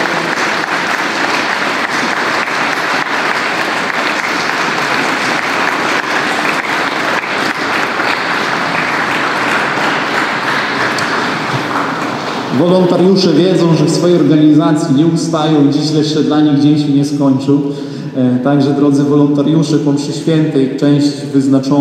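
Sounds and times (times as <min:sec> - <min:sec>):
audience applause: 0:00.0 - 0:14.0
speech: 0:12.6 - 0:21.7.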